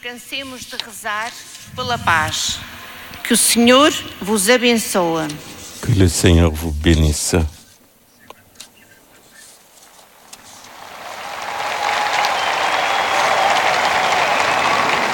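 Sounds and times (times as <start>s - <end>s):
speech: 0.0s - 7.6s
large crowd of pilgrims applauding: 10.7s - 15.1s.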